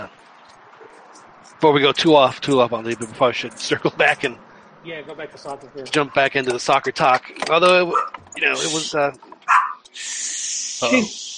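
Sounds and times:
speech: 1.6s - 9.3s, 10.0s - 11.2s
guard dog barking: 7.9s - 8.2s, 9.5s - 9.8s
high hiss: 8.5s - 9.1s, 10.0s - 11.3s.

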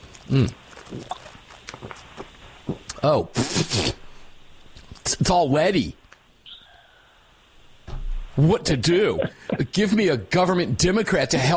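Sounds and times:
faint gulps: 0.0s - 4.0s
slurping sip of water from a bottle: 0.0s - 4.0s
speech: 0.3s - 1.2s, 3.0s - 4.0s, 5.1s - 6.0s, 8.4s - 11.5s.

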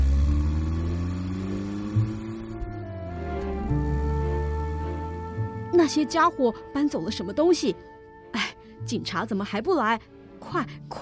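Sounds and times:
car driving away: 0.0s - 5.7s
speech: 5.8s - 11.0s.

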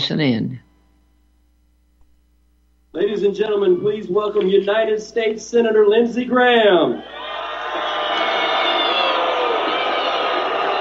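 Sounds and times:
speech: 0.1s - 0.7s, 2.9s - 7.3s
crowd booing Senator Lindsey Graham on stage: 6.9s - 10.7s.

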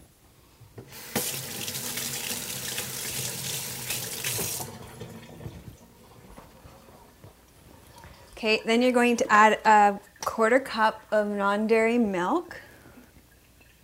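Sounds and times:
tap water running over hands: 0.8s - 8.4s
speech: 8.4s - 12.6s.

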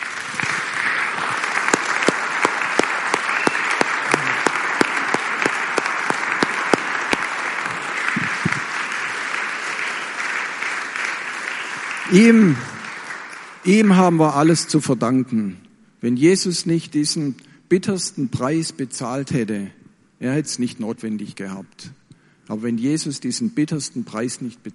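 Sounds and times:
audience applauding: 0.0s - 14.3s
speech: 12.1s - 12.7s, 13.6s - 24.7s.

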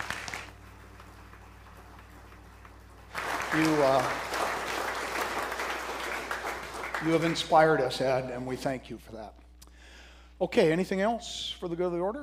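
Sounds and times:
audience applauding: 0.0s - 8.3s
speech: 3.6s - 4.3s, 7.0s - 9.4s, 10.4s - 12.2s.

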